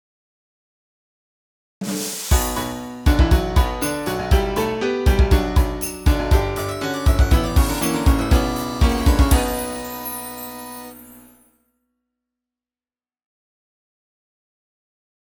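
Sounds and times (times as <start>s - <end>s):
jingle: 2.3s - 11.5s.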